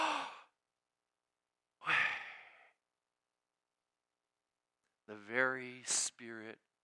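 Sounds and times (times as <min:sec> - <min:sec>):
breathing imitating the divine name Yahweh: 0:01.8 - 0:02.8
speech: 0:05.1 - 0:06.7.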